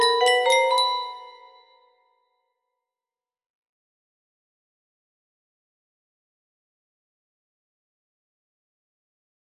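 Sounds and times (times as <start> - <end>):
music box: 0.0 - 1.8.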